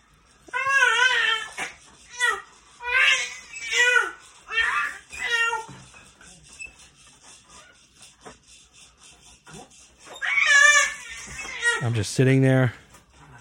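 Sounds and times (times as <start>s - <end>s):
baby jumping and screaming in a jumper: 0.5s - 5.7s, 10.2s - 11.8s
speech: 11.9s - 12.8s.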